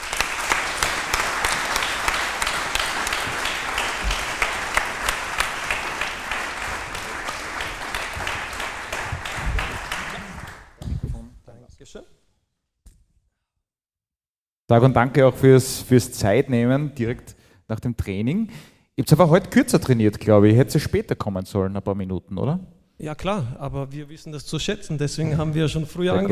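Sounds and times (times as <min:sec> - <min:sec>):
audience applause: 0:00.0 - 0:10.8
speech: 0:14.7 - 0:26.3.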